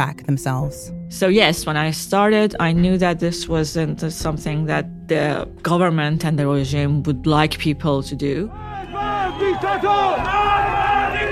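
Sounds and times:
speech: 0:00.0 - 0:11.2
protest crowd chanting slogans: 0:08.6 - 0:11.2.

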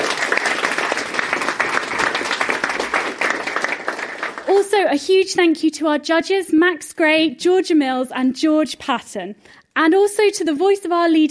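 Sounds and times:
audience applause: 0:00.0 - 0:04.6
speech: 0:04.8 - 0:11.2.

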